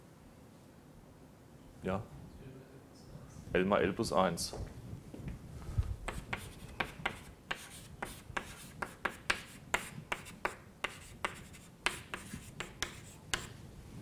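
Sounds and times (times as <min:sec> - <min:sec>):
speech: 0:01.8 - 0:02.2, 0:03.5 - 0:04.8
handwriting during a physics lecture: 0:06.1 - 0:13.6.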